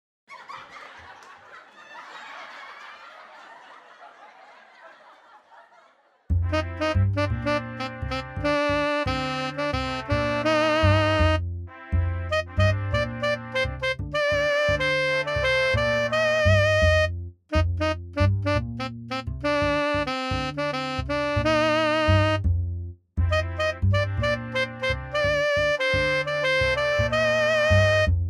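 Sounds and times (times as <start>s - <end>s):
laughter: 0.3s - 6.3s
MIDI blues music: 6.5s - 11.4s, 12.3s - 22.4s, 23.3s - 28.1s.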